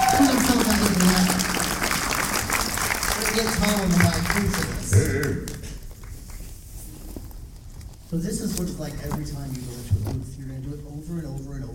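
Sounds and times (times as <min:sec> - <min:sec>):
voices and cheers: 0:00.0 - 0:01.8
audience applause: 0:00.0 - 0:06.2
speech: 0:03.4 - 0:05.6, 0:08.1 - 0:11.7.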